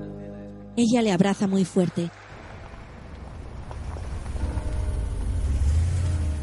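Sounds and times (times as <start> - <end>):
speech: 0.8 - 2.2
car arriving at a prison building: 2.1 - 6.4.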